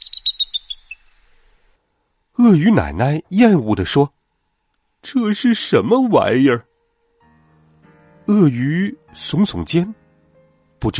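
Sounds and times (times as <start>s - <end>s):
baby bird chirping: 0.0s - 1.3s
speech: 2.4s - 4.2s, 5.0s - 6.7s, 8.3s - 10.0s, 10.8s - 10.9s.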